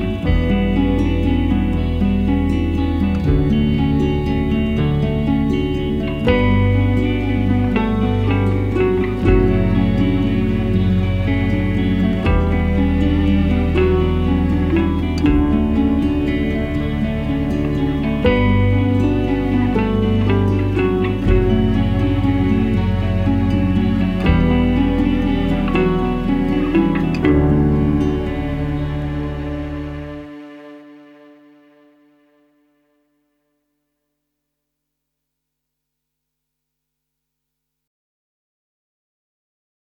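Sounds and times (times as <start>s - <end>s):
electric piano: 0.0s - 31.3s.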